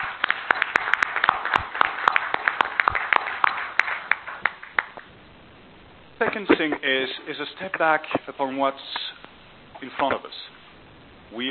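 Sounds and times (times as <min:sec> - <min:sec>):
meeting attendees applauding: 0:00.0 - 0:05.1
speech: 0:06.2 - 0:10.6.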